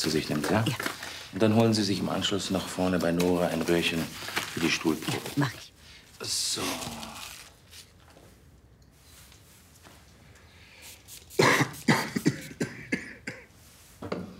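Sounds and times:
speech: 0.0 - 7.2
coughing: 11.4 - 13.5.

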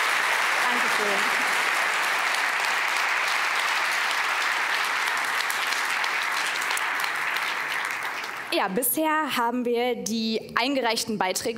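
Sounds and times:
crowd applause: 0.0 - 8.6
speech: 1.0 - 1.6, 8.6 - 11.5.

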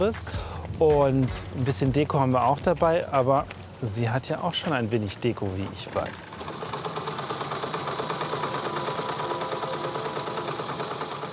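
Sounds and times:
speech: 0.0 - 6.6
sewing machine stitching lavender-filled cushions: 5.8 - 11.3.

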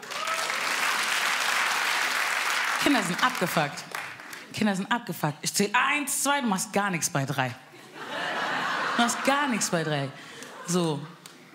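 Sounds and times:
audience applause at a stand-up comedy show: 0.0 - 4.4
speech: 2.8 - 3.9, 4.5 - 7.7, 9.0 - 11.2
laughter: 7.8 - 11.5.

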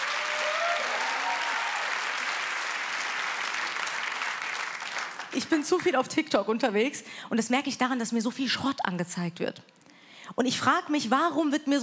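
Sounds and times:
audience applause: 0.0 - 5.4
speech: 5.3 - 11.8.

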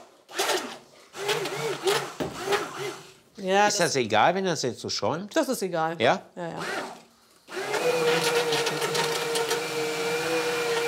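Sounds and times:
small electric kitchen mixer whirring through a thick sugar mixture: 0.3 - 3.1, 6.6 - 10.8
speech: 3.4 - 6.9.

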